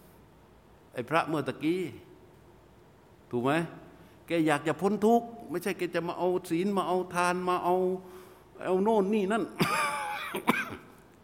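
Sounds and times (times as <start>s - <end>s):
speech: 1.0s - 2.1s, 3.3s - 10.9s
coughing: 9.6s - 11.1s.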